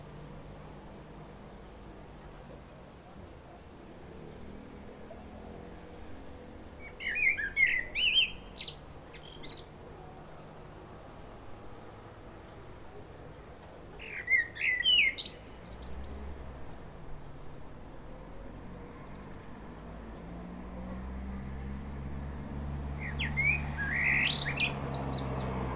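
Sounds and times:
common blackbird Turdus merula song: 6.8s - 10.1s, 14.0s - 16.4s, 21.7s - 25.6s.

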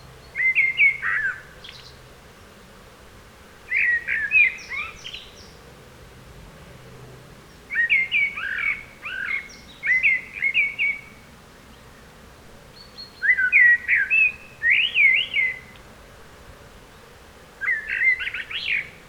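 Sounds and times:
Turdus merula common blackbird singing mellow whistled notes: 0.3s - 1.9s, 7.7s - 11.1s, 12.8s - 15.8s, 17.6s - 18.9s.

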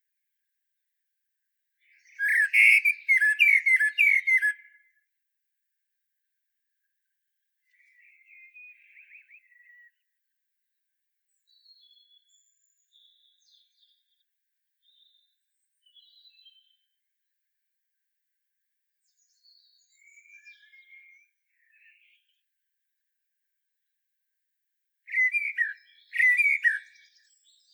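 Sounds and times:
common blackbird singing: 1.8s - 4.8s, 7.7s - 10.0s, 11.4s - 14.0s, 14.8s - 16.9s, 19.1s - 22.3s, 25.1s - 27.7s.

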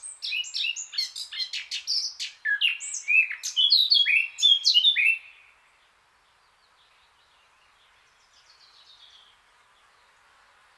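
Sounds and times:
Eurasian blackcap Sylvia atricapilla song: 0.0s - 5.4s.

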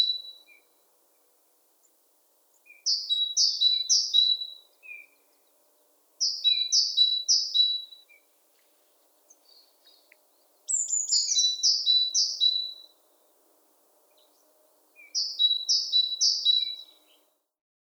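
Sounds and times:
great tit singing: 1.8s - 8.3s, 9.2s - 13.0s, 14.0s - 17.3s.

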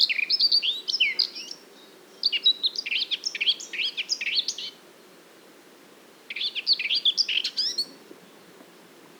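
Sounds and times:
Eurasian blackcap song, Sylvia atricapilla: 0.0s - 1.6s, 2.2s - 4.8s, 6.3s - 8.0s.

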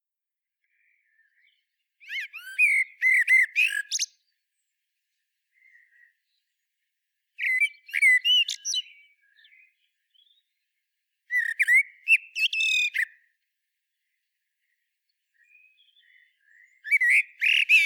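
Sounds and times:
common blackbird song: 0.7s - 4.4s, 7.4s - 10.6s, 11.3s - 13.2s, 14.6s - 17.8s.

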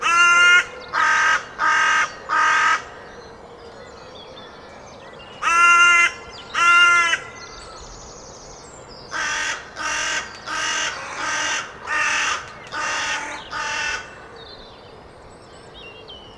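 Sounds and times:
carrion crow Corvus corone giving loud harsh even caws: 0.0s - 3.2s, 5.4s - 7.4s, 9.1s - 14.4s.

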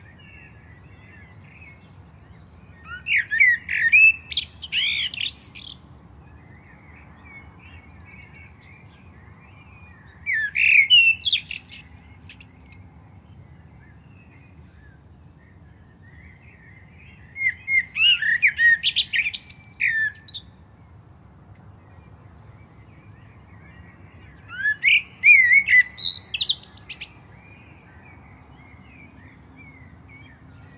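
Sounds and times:
faint birdsong: 0.0s - 30.7s
Common blackbird singing fluted warbles and squeaky twitters: 2.9s - 5.8s, 10.2s - 12.8s, 17.3s - 20.5s, 24.4s - 27.2s.

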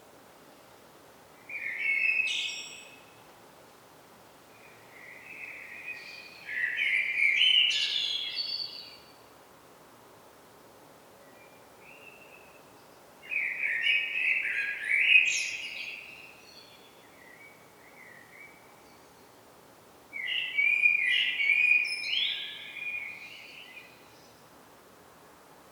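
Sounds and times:
common blackbird Turdus merula song: 1.5s - 3.1s, 4.6s - 9.2s, 11.3s - 19.4s, 20.2s - 24.4s.

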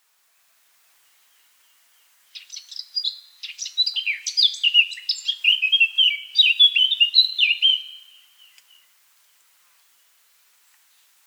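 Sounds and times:
Eurasian blackcap warbling: 1.3s - 8.9s.

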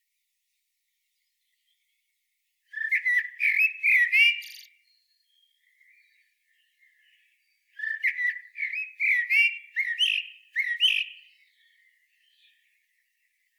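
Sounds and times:
Eurasian blackbird Turdus merula singing mellow fluting phrases: 2.7s - 13.5s.

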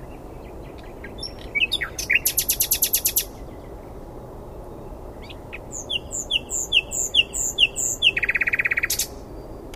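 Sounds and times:
Common nightingale Luscinia megarhynchos song: 0.0s - 9.7s.

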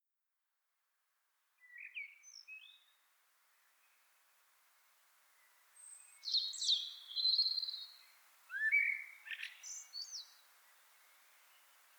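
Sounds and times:
common blackbird Turdus merula singing fluted warbles and squeaky notes: 6.2s - 10.4s.

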